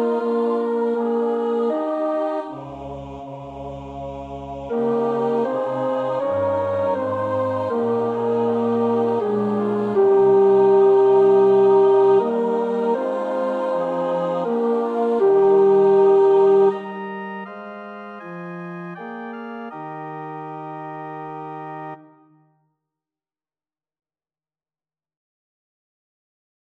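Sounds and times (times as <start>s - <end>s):
tenor singing: 0.0s - 17.6s.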